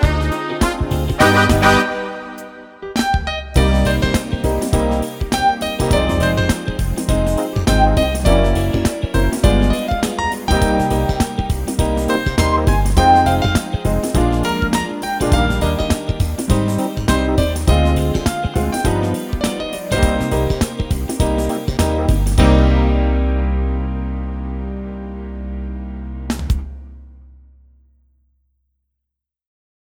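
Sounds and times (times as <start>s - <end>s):
jazz pop piano and brass on Yamaha: 0.0s - 26.9s.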